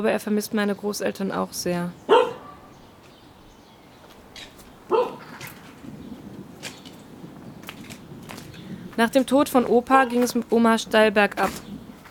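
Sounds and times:
speech: 0:00.0 - 0:02.2, 0:09.0 - 0:11.7
neighbour's dog barking: 0:02.1 - 0:02.7, 0:04.9 - 0:05.4.

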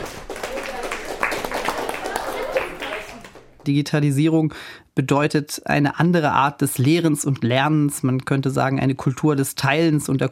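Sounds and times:
audience applause: 0:00.0 - 0:03.7
crowd noise: 0:00.0 - 0:03.8
speech: 0:03.6 - 0:10.2.

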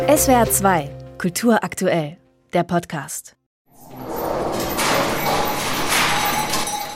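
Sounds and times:
speech: 0:00.1 - 0:03.3
kinetic sculpture of household objects rattling and clanking: 0:03.8 - 0:06.9.

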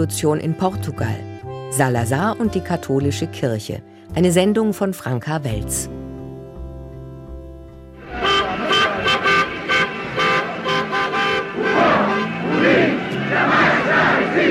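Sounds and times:
speech: 0:00.0 - 0:06.0
crowds cheering in the streets of Lisbon: 0:08.0 - 0:14.4.

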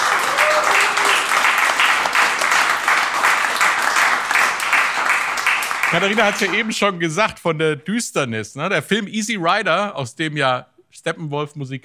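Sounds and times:
applause: 0:00.0 - 0:06.8
speech: 0:05.9 - 0:11.8.

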